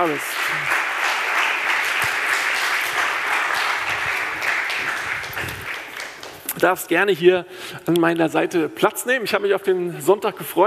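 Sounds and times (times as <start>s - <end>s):
speech: 0.0s - 0.8s, 6.6s - 10.6s
audience applause: 0.0s - 6.4s.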